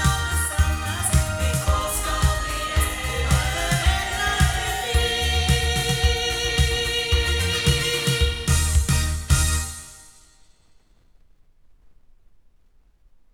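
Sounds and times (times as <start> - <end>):
loudspeakers: 0.0 - 9.7.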